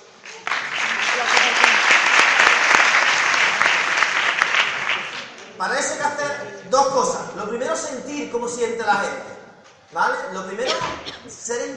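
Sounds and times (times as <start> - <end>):
audience applause: 0.0 - 6.1
speech: 6.7 - 11.7.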